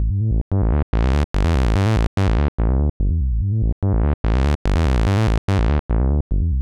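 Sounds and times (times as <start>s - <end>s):
bass: 0.0s - 6.6s.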